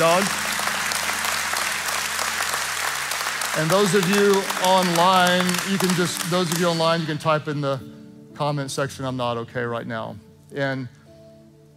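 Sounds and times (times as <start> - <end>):
speech: 0.0 - 0.4, 3.6 - 11.0
church congregation clapping: 0.0 - 7.4.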